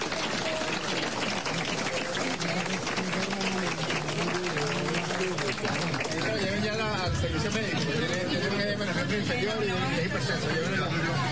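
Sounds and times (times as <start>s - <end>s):
crowd applause: 0.0s - 8.6s
voices murmuring and calling out: 0.0s - 11.3s
speech: 9.2s - 11.1s.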